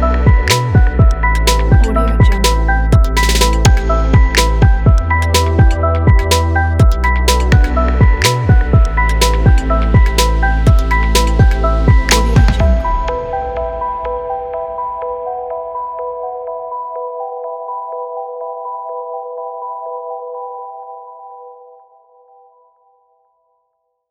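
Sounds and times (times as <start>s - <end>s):
uplifting vlog music: 0.0s - 17.1s.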